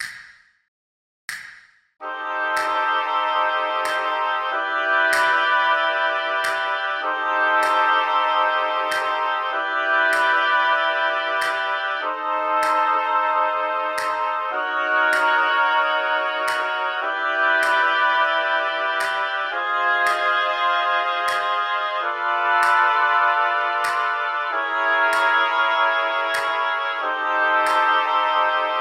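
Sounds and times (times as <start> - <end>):
oboes playing: 2.0 - 28.7.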